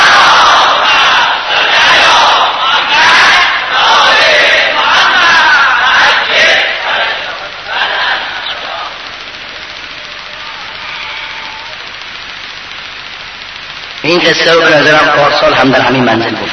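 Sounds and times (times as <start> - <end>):
large crowd chanting salawat in response: 0.0 - 11.8
speech: 14.2 - 16.5.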